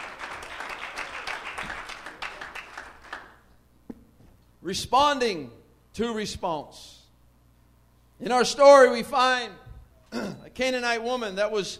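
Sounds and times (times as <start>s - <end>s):
audience hand clapping: 0.0s - 3.5s
speech: 4.6s - 7.0s, 8.2s - 11.7s.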